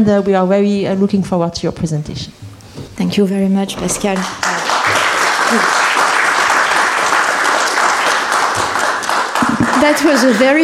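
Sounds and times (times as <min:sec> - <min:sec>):
speech: 0:00.0 - 0:02.4, 0:03.0 - 0:04.5, 0:05.5 - 0:05.8, 0:09.8 - 0:10.6
audience applause: 0:04.1 - 0:10.6.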